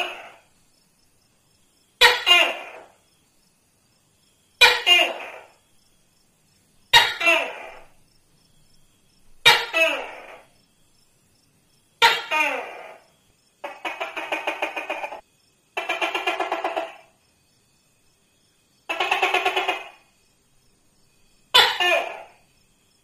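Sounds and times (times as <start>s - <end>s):
Tokay gecko two-note barks: 0.0s - 0.5s, 2.0s - 3.0s, 4.6s - 5.6s, 6.9s - 8.0s, 9.4s - 10.6s, 12.0s - 15.2s, 15.8s - 17.2s, 18.9s - 20.1s, 21.5s - 22.4s.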